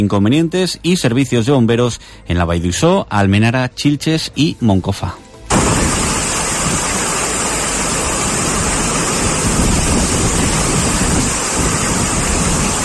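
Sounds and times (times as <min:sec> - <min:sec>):
speech: 0:00.0 - 0:05.2
heavy rain driven by strong wind: 0:05.5 - 0:12.8.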